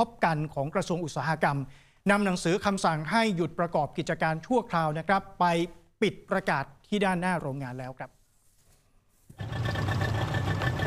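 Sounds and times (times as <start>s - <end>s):
speech: 0.0s - 8.2s
boat engine carrying a crew across floodwater near a waste landfill: 9.4s - 10.8s.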